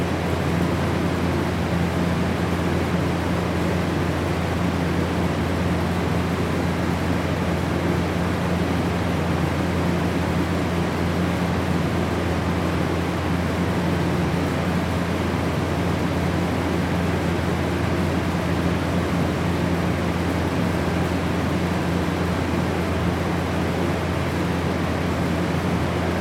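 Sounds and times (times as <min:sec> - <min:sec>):
walk-in freezer industrial machinery inside: 0:00.1 - 0:26.1.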